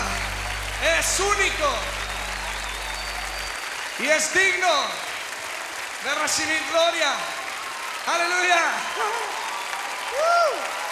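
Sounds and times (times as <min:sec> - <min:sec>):
church congregation applause: 0:00.0 - 0:10.9
speech: 0:01.0 - 0:02.0, 0:04.0 - 0:05.0, 0:06.0 - 0:07.4, 0:08.0 - 0:09.2, 0:10.1 - 0:10.8.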